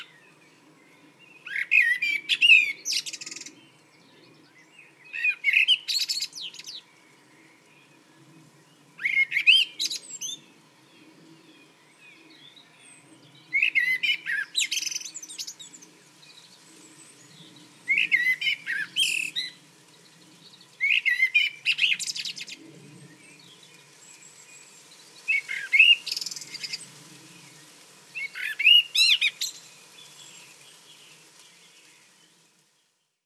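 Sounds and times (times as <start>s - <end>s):
Common blackbird singing: 1.0s - 6.9s, 9.0s - 10.5s, 11.4s - 19.6s, 20.4s - 26.9s, 28.2s - 32.2s.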